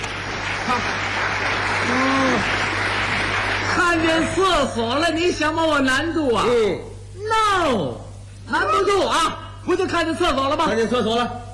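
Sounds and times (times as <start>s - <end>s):
audience applauding during a live comedic performance: 0.0s - 4.7s
speech: 0.7s - 2.7s, 3.7s - 11.4s.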